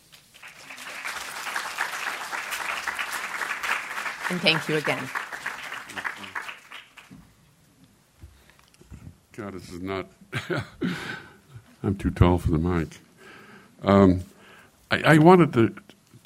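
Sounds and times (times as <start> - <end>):
audience applause: 0.3 - 7.1
speech: 4.3 - 5.3, 9.4 - 11.2, 11.8 - 13.0, 13.8 - 14.3, 14.9 - 15.8.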